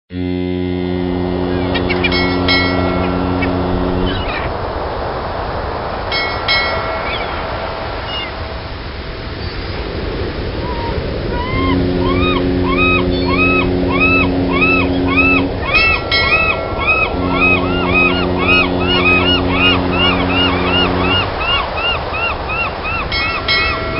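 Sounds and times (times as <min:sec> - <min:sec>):
ocean waves: 0:00.2 - 0:23.9.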